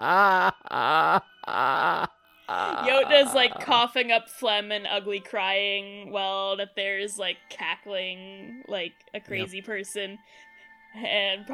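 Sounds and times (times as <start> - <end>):
person imitating an over-the-top crying wail: 0.0 - 3.7
speech: 3.2 - 11.5.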